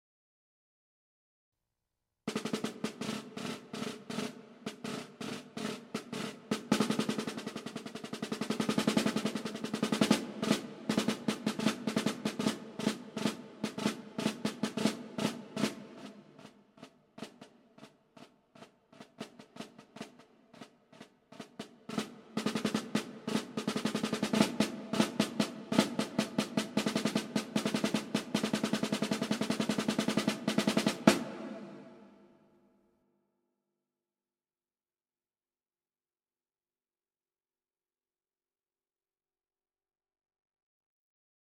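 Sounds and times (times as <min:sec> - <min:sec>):
snare drum: 0:02.3 - 0:32.3.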